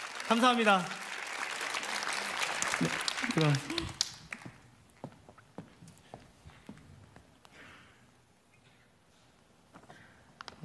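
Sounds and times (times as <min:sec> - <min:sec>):
audience applause after a lecture: 0:00.0 - 0:04.7
speech: 0:00.3 - 0:01.0, 0:02.8 - 0:04.0.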